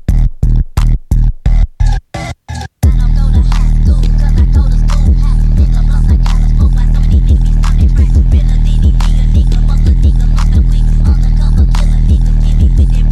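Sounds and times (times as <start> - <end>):
Japanese stutter phonk music: 0.0 - 13.0.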